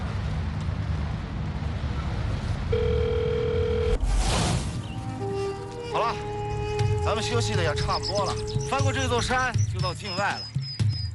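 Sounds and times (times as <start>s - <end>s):
constant rumbling noise: 0.0s - 10.2s
telephone dial tone: 2.7s - 4.0s
speech: 7.2s - 10.5s.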